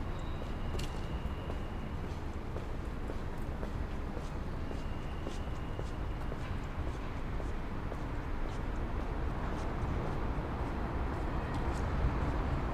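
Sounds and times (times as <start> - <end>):
traffic rumble in a Dutch city square: 0.0 - 12.7.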